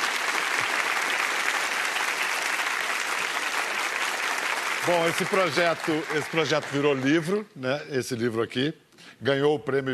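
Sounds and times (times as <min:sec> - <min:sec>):
audience applause: 0:00.0 - 0:07.4
speech: 0:04.9 - 0:09.9.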